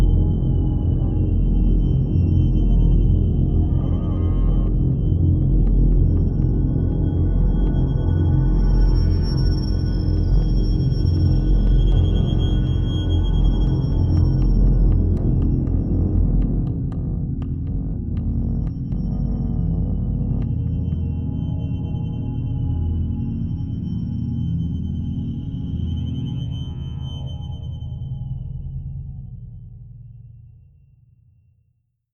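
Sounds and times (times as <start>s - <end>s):
dark drone: 0.0s - 30.2s.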